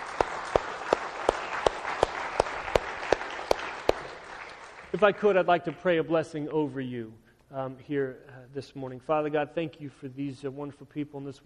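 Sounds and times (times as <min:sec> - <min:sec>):
audience applauding: 0:00.0 - 0:05.2
rhythmic sharp evenly spaced claps: 0:00.0 - 0:05.9
speech: 0:04.9 - 0:11.4.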